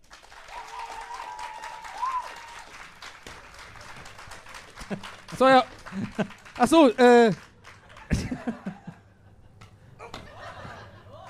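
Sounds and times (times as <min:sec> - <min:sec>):
audience applause: 0:00.0 - 0:09.0
laughter: 0:04.5 - 0:11.2
speech: 0:04.9 - 0:07.5.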